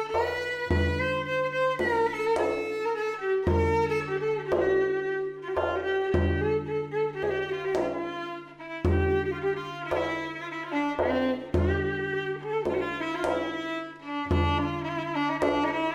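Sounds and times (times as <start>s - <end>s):
Hüseyni saz semâî instrumental piece: 0.0s - 15.9s.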